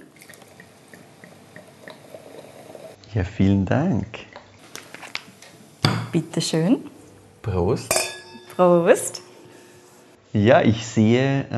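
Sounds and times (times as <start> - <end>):
sparkling rosé wine pouring into a glass: 0.0 - 3.0
speech: 3.1 - 4.3, 6.1 - 8.0, 8.6 - 9.2, 10.3 - 11.5.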